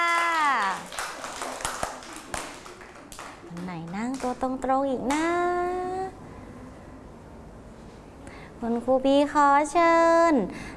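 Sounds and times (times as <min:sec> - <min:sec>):
scattered claps: 0:00.0 - 0:05.3
speech: 0:04.3 - 0:05.6, 0:08.6 - 0:10.7.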